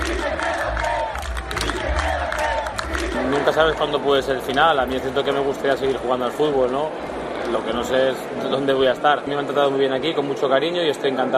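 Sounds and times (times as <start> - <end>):
Porto football fans chanting a player's name: 0.0 - 4.0
speech: 3.5 - 11.3.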